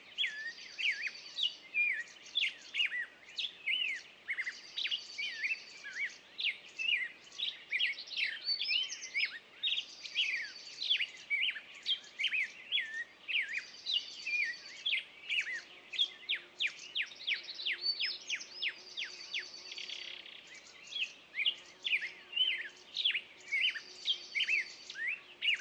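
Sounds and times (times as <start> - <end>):
birds in the morning on a meadow: 0.0 - 25.6.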